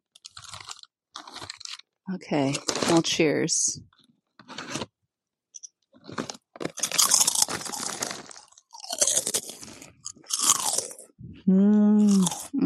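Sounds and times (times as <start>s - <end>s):
crunchy snack being chewed: 0.1s - 3.0s, 4.0s - 4.9s, 5.6s - 11.2s, 12.0s - 12.5s
speech: 2.1s - 3.9s.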